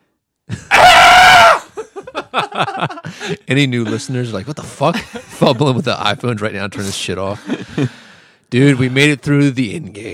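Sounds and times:
goat screaming after being poked: 0.7 - 1.7
laughter: 1.6 - 8.0
speech: 2.3 - 10.1.

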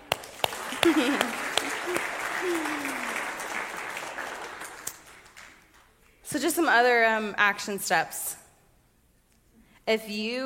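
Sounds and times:
audience clapping: 0.0 - 6.2
laughter: 0.6 - 3.2
speech: 0.8 - 2.7, 6.4 - 8.4, 9.9 - 10.4.

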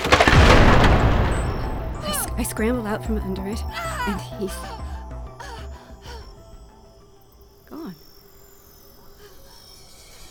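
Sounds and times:
huge front door crashing down: 0.0 - 2.4
speech: 2.4 - 4.8.

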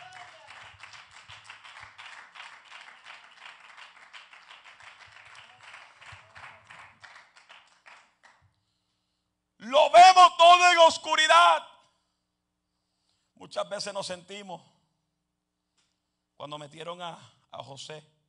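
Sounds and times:
church congregation clapping during a service: 0.0 - 8.4
speech: 10.6 - 11.7, 13.5 - 14.7, 16.4 - 18.1.

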